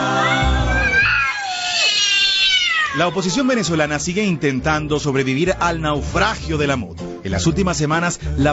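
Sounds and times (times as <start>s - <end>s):
cats fighting and caterwauling: 0.1s - 3.8s
speech: 3.1s - 8.5s.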